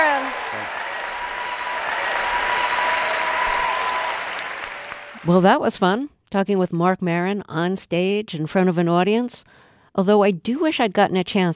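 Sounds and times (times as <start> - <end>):
audience applause: 0.0 - 5.4
speech: 5.2 - 11.5.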